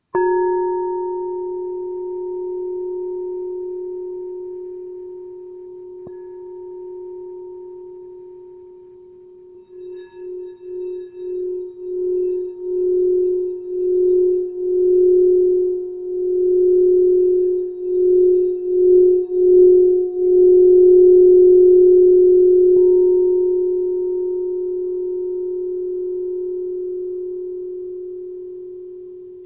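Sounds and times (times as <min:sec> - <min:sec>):
red 1386g Tibetan singing bowl in F: 0:00.0 - 0:29.4.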